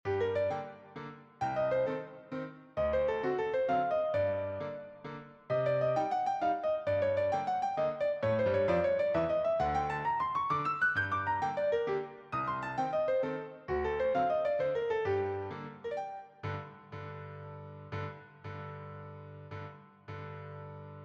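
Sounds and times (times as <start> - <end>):
waltz in a minor key: 0.1 - 16.4.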